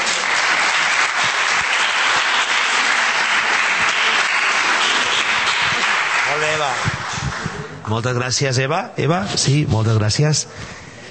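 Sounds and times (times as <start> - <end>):
audience applause: 0.0 - 7.8
speech: 7.9 - 10.9.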